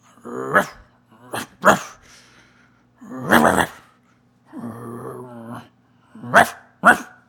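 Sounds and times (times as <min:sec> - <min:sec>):
dog growling: 0:00.1 - 0:02.0, 0:03.0 - 0:03.9, 0:04.5 - 0:07.2
dog barking: 0:06.3 - 0:07.2.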